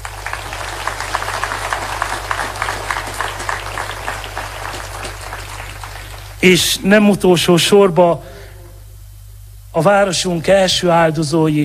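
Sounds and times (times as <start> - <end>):
audience applause: 0.0 - 6.4
low constant hum: 0.0 - 11.6
speech: 6.4 - 8.3, 9.8 - 11.6.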